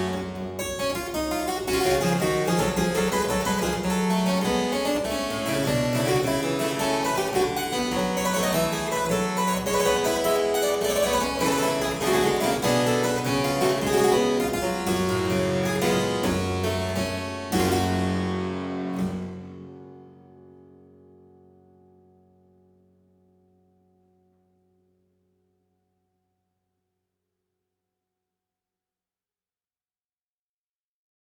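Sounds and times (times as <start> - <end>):
harpsichord piece in G minor: 0.0 - 20.3.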